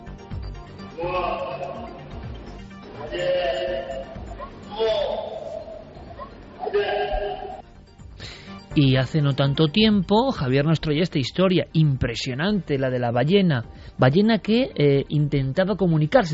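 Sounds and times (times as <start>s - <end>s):
elephant vocalization: 0.9s - 2.2s, 2.8s - 7.6s
speech: 8.8s - 16.3s.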